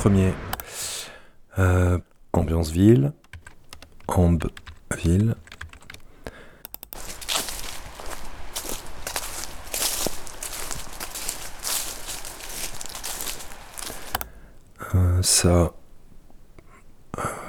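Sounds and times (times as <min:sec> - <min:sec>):
speech: 0:00.0 - 0:00.8, 0:01.6 - 0:03.2, 0:04.1 - 0:05.4, 0:14.9 - 0:15.8
footsteps tramping through grass: 0:07.0 - 0:14.2.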